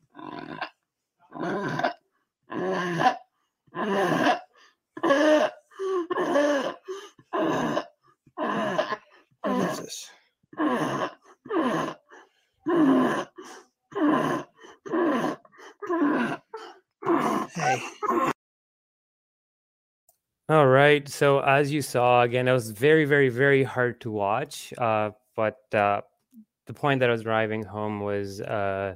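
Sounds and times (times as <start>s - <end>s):
labored gasping breathing with snorting sounds: 2.6s - 18.3s
speech: 20.5s - 26.1s, 26.8s - 28.9s.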